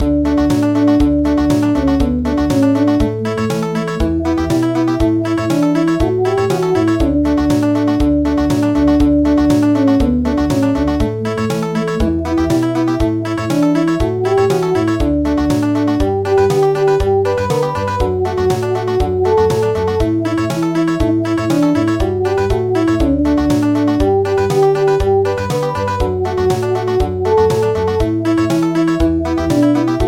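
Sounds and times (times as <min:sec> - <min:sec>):
country music: 0:00.0 - 0:30.0.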